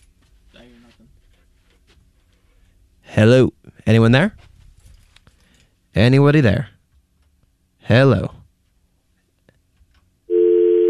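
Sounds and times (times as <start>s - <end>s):
speech: 0.7s - 1.3s, 3.1s - 4.5s, 6.0s - 6.7s, 7.9s - 8.4s
telephone busy tone after a dropped call: 10.3s - 10.8s.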